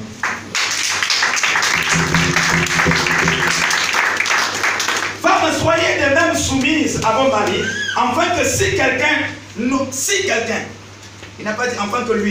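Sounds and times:
audience applauding and cheering: 0.2s - 5.2s
speech: 6.4s - 10.8s, 11.4s - 12.2s.

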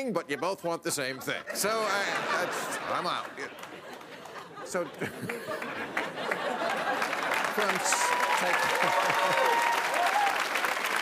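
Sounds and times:
speech: 0.0s - 3.8s, 4.6s - 6.7s, 7.6s - 9.8s
laughter: 0.3s - 9.8s
audience applause: 1.9s - 11.0s.

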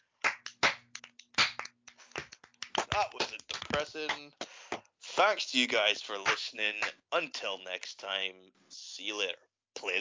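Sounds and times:
brief round of applause: 0.2s - 4.9s, 6.2s - 7.0s
speech: 3.0s - 4.4s, 5.2s - 9.9s.

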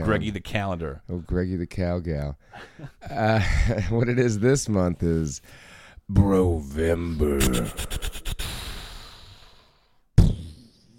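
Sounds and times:
speech: 0.1s - 8.2s
voice imitating an explosion: 7.2s - 8.7s, 10.2s - 10.9s.

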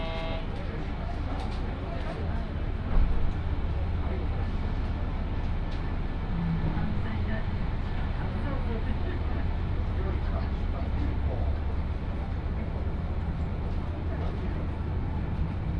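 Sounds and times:
Yodo Line KiHa 54 train carriage rumble: 0.0s - 15.7s
murmured voices: 0.0s - 15.7s.

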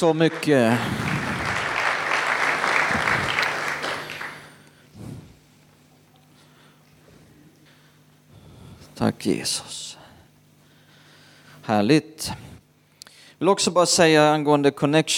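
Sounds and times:
speech: 0.0s - 1.0s, 9.0s - 10.0s, 11.7s - 12.5s, 13.4s - 15.1s
audience applause: 0.0s - 4.6s.

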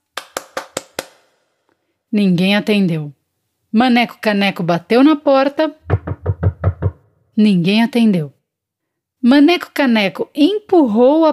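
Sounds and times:
hand clapping: 0.0s - 1.4s
speech: 2.1s - 6.0s, 7.4s - 8.4s, 9.2s - 11.3s.

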